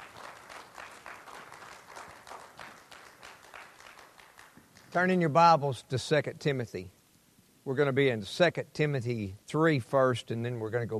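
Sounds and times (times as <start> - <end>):
audience clapping loudly: 0.0 - 5.2
speech: 4.9 - 7.0, 7.6 - 10.9.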